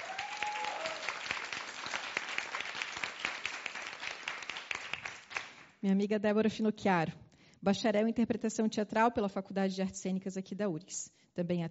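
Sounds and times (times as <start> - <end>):
applause: 0.0 - 5.8
speech: 5.8 - 11.6.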